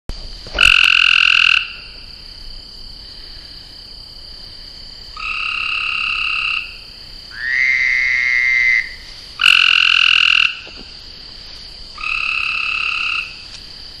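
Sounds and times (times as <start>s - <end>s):
frogs trilling in a pond: 0.6s - 2.4s, 5.0s - 11.1s, 11.9s - 13.6s.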